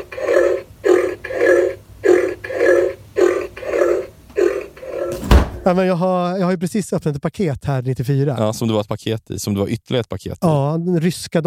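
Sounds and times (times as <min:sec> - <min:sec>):
pig grunting sound effect: 0:00.0 - 0:05.7
speech: 0:05.6 - 0:11.4.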